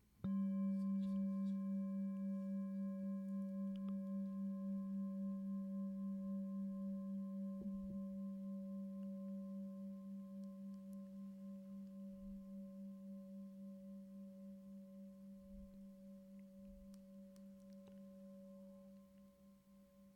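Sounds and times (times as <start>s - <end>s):
meditation bell ringing: 0.2s - 20.1s.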